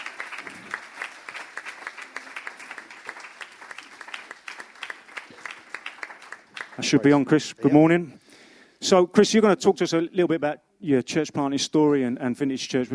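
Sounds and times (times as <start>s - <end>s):
audience applause welcoming a speaker: 0.0s - 7.6s
speech: 6.8s - 8.2s, 8.8s - 12.9s.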